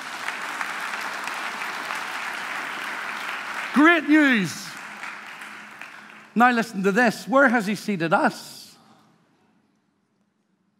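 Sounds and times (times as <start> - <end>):
audience applauding: 0.0 - 7.6
speech: 3.8 - 4.6, 6.4 - 8.6.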